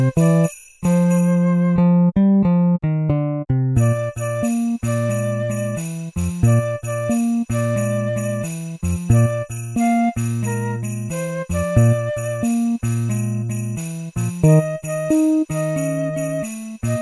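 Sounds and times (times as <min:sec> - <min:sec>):
jazz arrangement of a Christmas tune: 0:00.0 - 0:03.2, 0:03.8 - 0:16.9.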